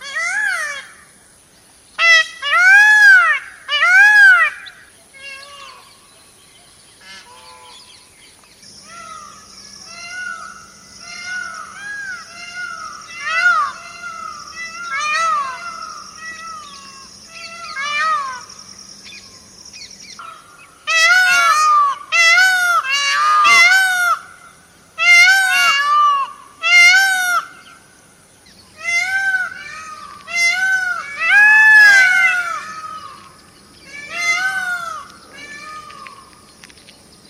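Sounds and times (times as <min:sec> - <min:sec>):
peacock calling: 0:00.0 - 0:01.1, 0:02.0 - 0:06.1, 0:07.0 - 0:08.1, 0:08.8 - 0:36.7.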